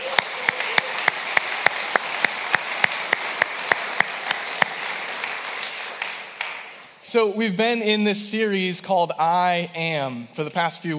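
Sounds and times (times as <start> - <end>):
church audience applause: 0.0 - 7.0
speech: 7.1 - 10.9.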